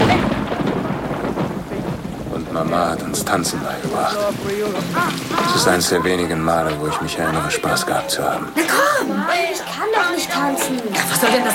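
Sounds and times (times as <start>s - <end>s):
rolling thunder: 0.0s - 8.7s
heavy rain: 0.0s - 11.5s
speech: 2.6s - 11.5s
laughter: 4.2s - 11.5s.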